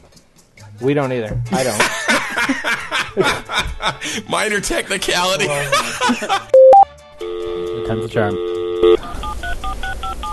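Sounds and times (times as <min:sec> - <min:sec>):
speech: 0:00.8 - 0:06.6, 0:07.9 - 0:09.0
laughter: 0:01.6 - 0:04.4, 0:05.4 - 0:06.6
touch-tone beeps as a phone number is dialed: 0:06.6 - 0:10.3.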